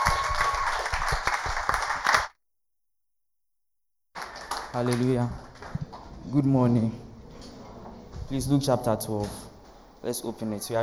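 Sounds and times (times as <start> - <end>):
crowd applauding: 0.0 - 2.3, 4.2 - 6.1
speech: 4.7 - 5.5, 6.3 - 7.0, 8.3 - 10.8.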